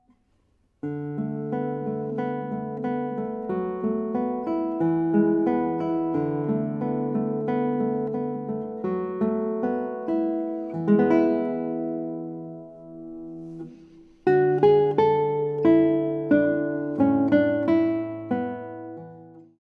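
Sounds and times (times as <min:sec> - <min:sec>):
guitar: 0:00.0 - 0:19.6.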